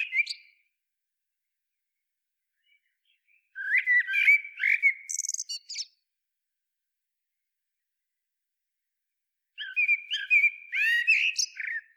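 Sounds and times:
Turdus merula common blackbird singing warbling phrases: 0:00.0 - 0:00.6, 0:02.6 - 0:06.0, 0:09.6 - 0:11.9.

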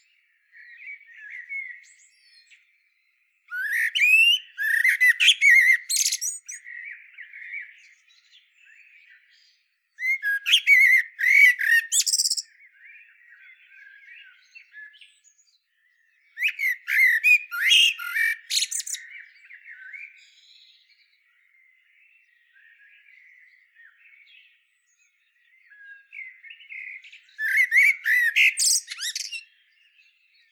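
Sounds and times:
Eurasian blackbird singing: 0:00.0 - 0:30.5
Eurasian blackbird harsh squawks: 0:03.5 - 0:06.6, 0:10.0 - 0:12.4, 0:16.4 - 0:19.0, 0:27.4 - 0:29.4.

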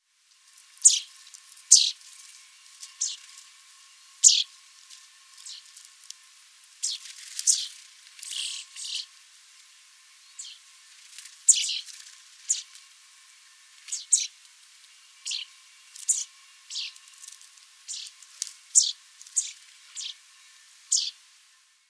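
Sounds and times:
Fringilla coelebs: 0:00.8 - 0:01.1, 0:01.7 - 0:02.0, 0:02.9 - 0:03.2, 0:04.2 - 0:04.5, 0:05.4 - 0:05.7, 0:06.8 - 0:09.1, 0:10.3 - 0:10.6, 0:11.5 - 0:12.8, 0:13.8 - 0:14.4, 0:15.2 - 0:17.3, 0:17.9 - 0:20.2, 0:20.9 - 0:21.2.

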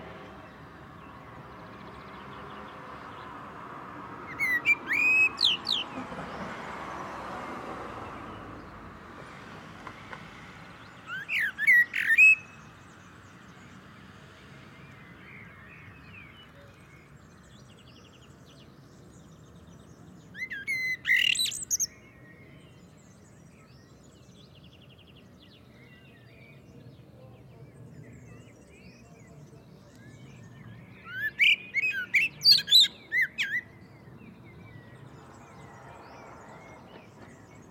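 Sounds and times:
faint birds: 0:00.0 - 0:37.6
common blackbird whistling: 0:04.3 - 0:05.8, 0:11.1 - 0:12.6, 0:20.4 - 0:21.9, 0:31.0 - 0:33.7.

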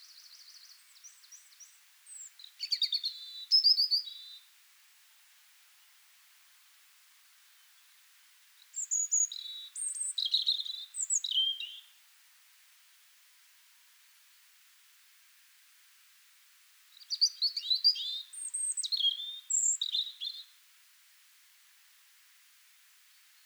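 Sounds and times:
European robin singing: 0:00.0 - 0:04.4, 0:08.7 - 0:11.9, 0:17.0 - 0:20.5.

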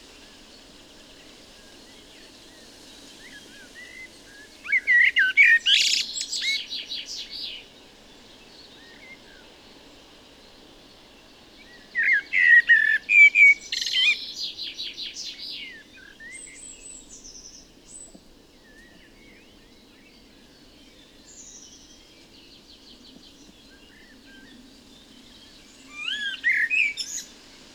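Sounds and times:
faint birds: 0:00.0 - 0:27.7
common blackbird singing: 0:03.2 - 0:07.6, 0:11.6 - 0:17.6, 0:23.2 - 0:27.4.

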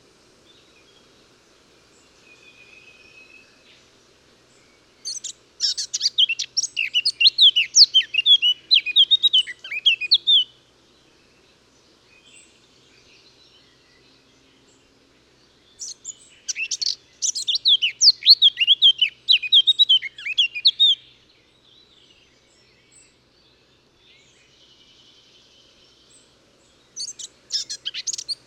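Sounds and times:
Eurasian blackcap (Sylvia atricapilla) singing: 0:05.0 - 0:10.5, 0:15.8 - 0:21.1, 0:27.0 - 0:28.4.

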